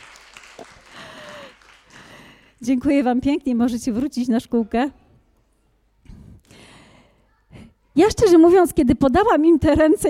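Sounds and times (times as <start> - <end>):
crowd clapping: 0.0 - 2.6
speech: 2.6 - 5.0, 8.0 - 10.0.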